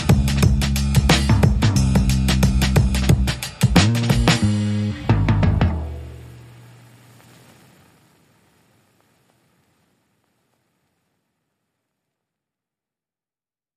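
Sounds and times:
drums: 0.0s - 6.5s
bass: 0.0s - 6.6s.

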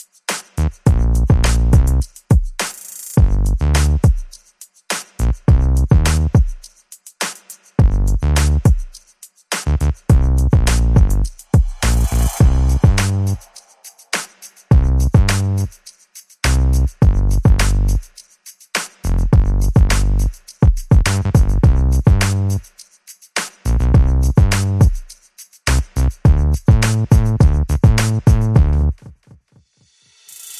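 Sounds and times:
drums: 0.0s - 18.2s, 18.8s - 22.8s, 23.4s - 30.5s
bass: 0.6s - 2.1s, 3.2s - 4.1s, 5.2s - 6.4s, 7.8s - 8.7s, 9.7s - 13.4s, 14.7s - 15.8s, 16.4s - 18.1s, 19.0s - 22.6s, 23.7s - 24.9s, 25.7s - 29.0s.

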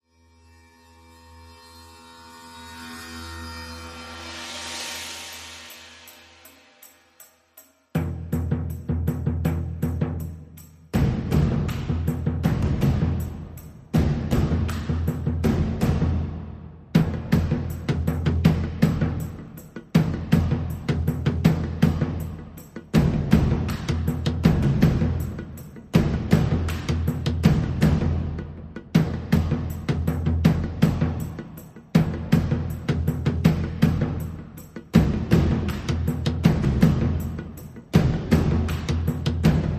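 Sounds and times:
percussion and pulses: 2.0s - 39.7s.

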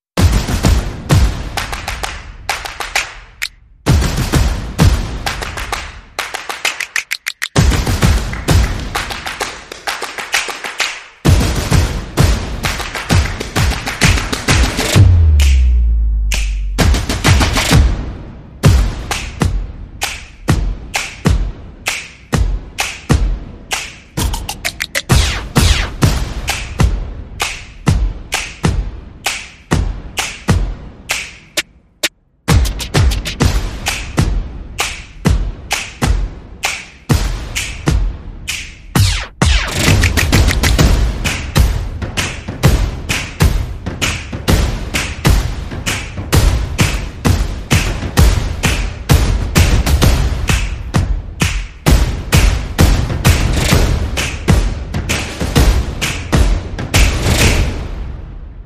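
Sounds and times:
percussion: 0.2s - 58.3s
sound effects: 24.2s - 26.2s, 39.0s - 40.8s.

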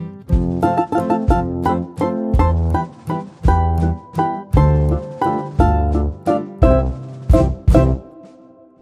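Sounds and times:
waltz music sting: 0.0s - 8.8s.

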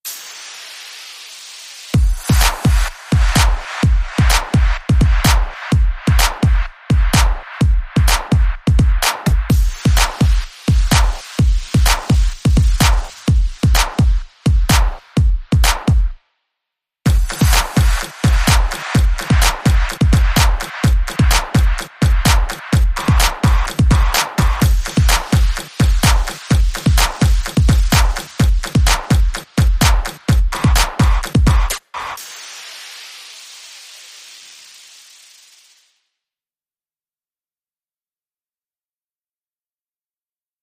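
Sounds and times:
music beat: 1.9s - 16.2s, 17.1s - 32.7s.

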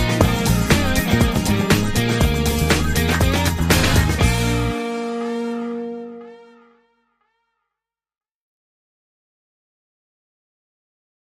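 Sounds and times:
lead guitar: 0.0s - 6.8s.

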